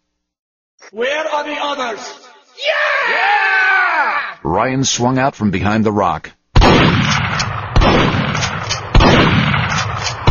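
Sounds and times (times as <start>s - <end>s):
speech: 0.9s - 6.4s
Smith & Wesson pump shotgun firing in an enclosed space: 6.6s - 10.2s.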